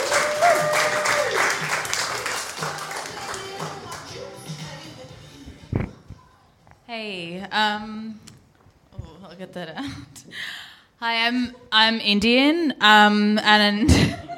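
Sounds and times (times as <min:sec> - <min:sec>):
audience applause: 0:00.0 - 0:04.1
speech: 0:07.0 - 0:08.1, 0:09.4 - 0:14.1.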